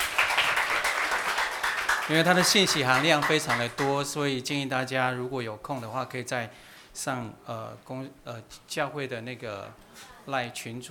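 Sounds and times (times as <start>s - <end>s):
warm crowd applause: 0.0s - 4.0s
speech: 2.1s - 10.8s.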